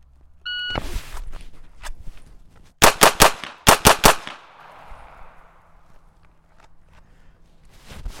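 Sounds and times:
pistol shots in a timed shooting drill, three rounds on each target: 0:02.8 - 0:05.5.

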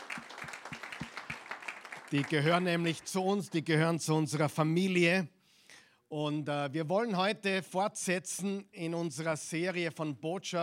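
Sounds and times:
audience applause: 0:00.0 - 0:03.2
speech: 0:02.1 - 0:05.4, 0:06.1 - 0:10.6.

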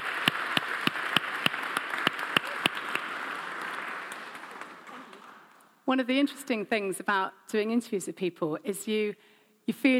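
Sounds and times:
round of applause: 0:00.0 - 0:05.5
speech: 0:05.9 - 0:09.9.

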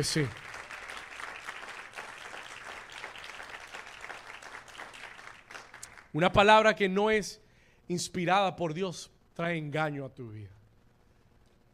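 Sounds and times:
speech: 0:00.0 - 0:00.4, 0:06.1 - 0:10.6
audience applause: 0:00.0 - 0:06.1.

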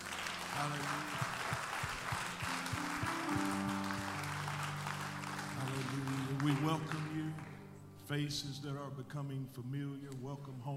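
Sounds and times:
audience applause: 0:00.0 - 0:07.6
speech: 0:00.6 - 0:01.5, 0:06.5 - 0:07.5, 0:08.1 - 0:10.7.

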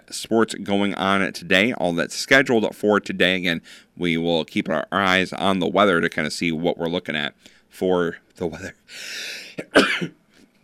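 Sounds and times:
speech: 0:00.1 - 0:10.2
person sneezing on air: 0:09.0 - 0:10.1.

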